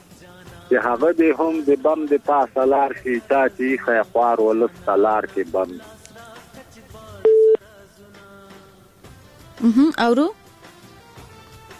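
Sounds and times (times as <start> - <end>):
speech: 0.7 - 6.0, 9.6 - 10.4
telephone busy tone after a phone-in call drops: 7.3 - 7.6.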